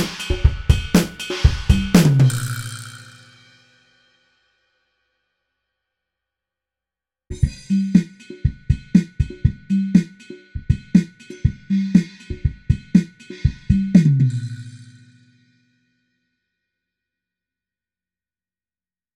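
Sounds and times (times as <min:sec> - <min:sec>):
drum: 0:00.0 - 0:03.5, 0:07.3 - 0:15.0.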